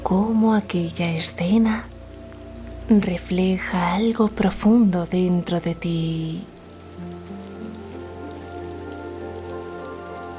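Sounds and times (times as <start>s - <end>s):
rain falling: 0.0s - 10.3s
speech: 0.1s - 1.9s, 2.9s - 7.3s.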